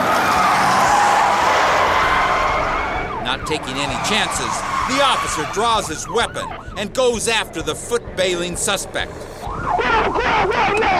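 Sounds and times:
car tires screeching in a skid: 0.0s - 6.0s
speech: 3.5s - 10.9s.

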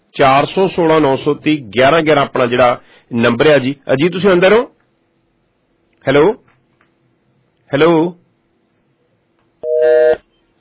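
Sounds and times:
speech: 0.2s - 4.8s, 6.0s - 6.4s, 7.7s - 8.2s
phone busy tone after a phone-in caller's line drops: 9.6s - 10.5s.

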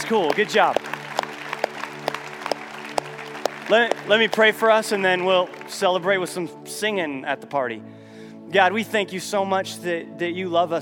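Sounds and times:
group clapping: 0.0s - 5.8s
speech: 0.1s - 0.9s, 3.7s - 7.9s, 8.5s - 10.8s.

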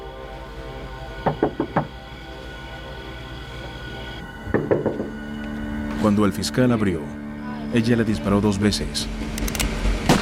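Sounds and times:
knocking on a wooden door: 1.2s - 2.0s, 4.5s - 5.2s
speech: 6.0s - 9.4s.

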